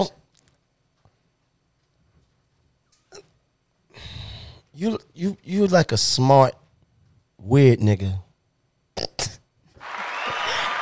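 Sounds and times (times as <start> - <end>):
speech: 4.8 - 6.6, 7.4 - 8.3
applause sound effect: 9.8 - 10.7.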